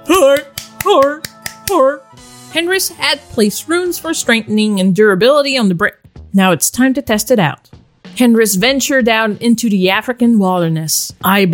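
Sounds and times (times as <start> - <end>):
speech: 0.1 - 11.5
hand claps: 0.2 - 1.9.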